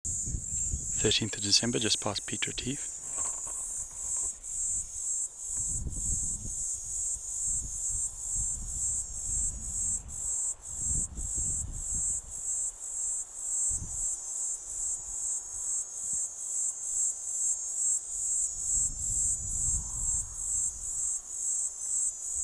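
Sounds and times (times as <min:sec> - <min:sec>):
Platypleura divisa cicada calling: 0:00.0 - 0:22.4
speech: 0:01.0 - 0:03.0.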